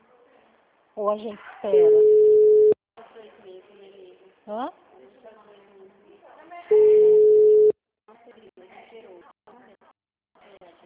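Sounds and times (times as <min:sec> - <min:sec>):
speech: 0:01.0 - 0:02.2, 0:04.5 - 0:04.8
telephone ringback tone: 0:01.8 - 0:02.8, 0:06.7 - 0:07.7.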